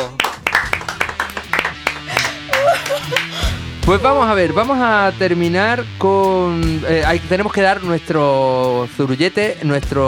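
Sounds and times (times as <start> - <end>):
loud audience applause: 0.0 - 3.5
laughter: 1.3 - 4.8
speech: 3.9 - 10.0.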